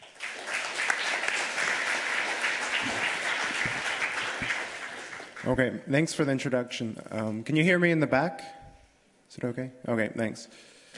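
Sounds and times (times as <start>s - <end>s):
audience clapping: 0.0s - 5.6s
speech: 5.4s - 8.6s, 9.4s - 10.7s.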